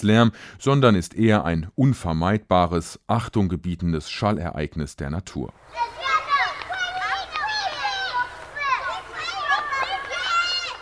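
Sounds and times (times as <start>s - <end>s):
speech: 0.0s - 6.1s
children playing: 5.6s - 10.8s.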